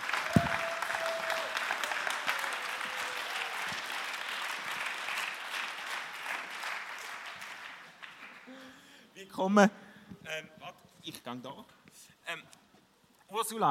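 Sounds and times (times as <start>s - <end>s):
audience clapping: 0.0s - 8.8s
speech: 9.4s - 12.6s, 13.3s - 13.7s.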